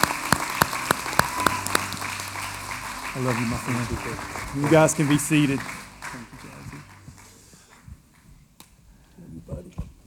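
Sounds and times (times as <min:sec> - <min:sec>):
audience clapping in unison: 0:00.0 - 0:08.6
speech: 0:03.2 - 0:06.4.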